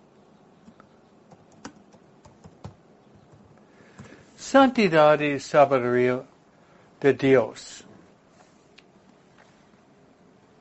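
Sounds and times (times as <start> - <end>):
typing on a computer keyboard: 0.7 - 4.1
speech: 4.4 - 6.3, 7.0 - 7.9.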